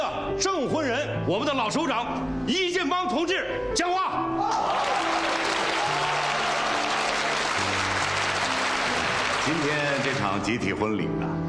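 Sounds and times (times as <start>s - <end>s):
speech: 0.4s - 5.6s, 9.5s - 11.4s
crowd applause: 4.5s - 10.5s.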